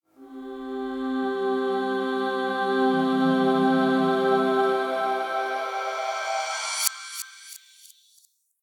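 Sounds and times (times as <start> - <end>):
heavenly voices intro: 0.2 - 6.9.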